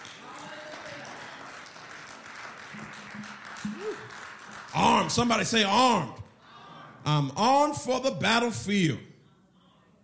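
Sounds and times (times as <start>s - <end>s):
crowd clapping: 0.0s - 6.4s
speech: 2.8s - 6.2s, 7.0s - 9.1s.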